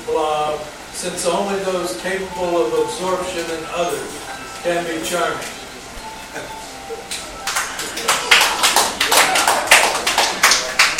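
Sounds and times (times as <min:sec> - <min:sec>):
speech: 0:00.1 - 0:05.6, 0:06.3 - 0:06.6
hand clapping: 0:07.1 - 0:10.9.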